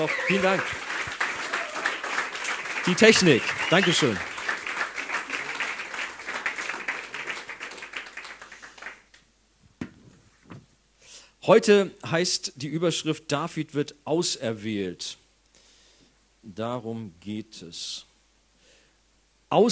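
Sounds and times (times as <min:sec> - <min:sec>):
speech: 0:00.0 - 0:00.8, 0:02.8 - 0:04.3, 0:11.5 - 0:15.2, 0:16.4 - 0:18.1, 0:19.5 - 0:19.7
audience applause: 0:00.0 - 0:09.1.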